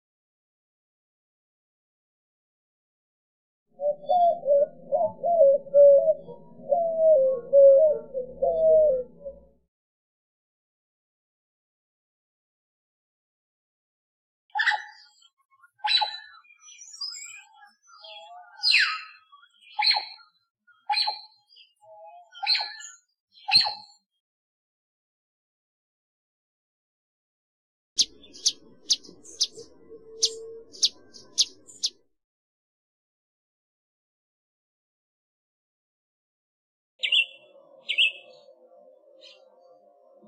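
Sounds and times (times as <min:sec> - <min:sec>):
birds in Costa Rica: 0:03.8 - 0:09.6, 0:14.6 - 0:24.1, 0:28.0 - 0:32.0, 0:37.0 - 0:40.2.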